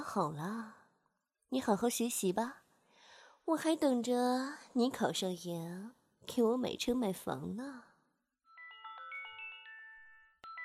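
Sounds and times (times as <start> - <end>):
speech: 0.1 - 0.8, 1.5 - 2.6, 3.5 - 7.9
alarm electronic ringtone with quick chiming notes: 8.4 - 10.6.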